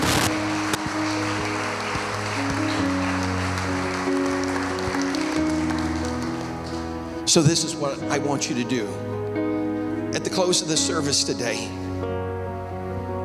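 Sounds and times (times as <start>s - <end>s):
audience clapping: 0.0s - 7.1s
sustained organ chords: 0.0s - 13.2s
speech: 7.3s - 9.1s, 10.3s - 12.1s.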